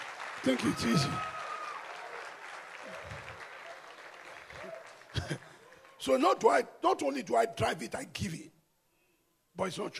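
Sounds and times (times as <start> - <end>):
audience applause: 0.0 - 6.0
speech: 0.4 - 1.3, 6.0 - 8.5, 9.6 - 9.9.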